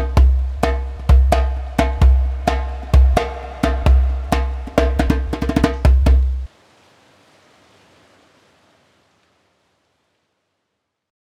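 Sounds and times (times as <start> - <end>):
djembe drumming: 0.0 - 6.5.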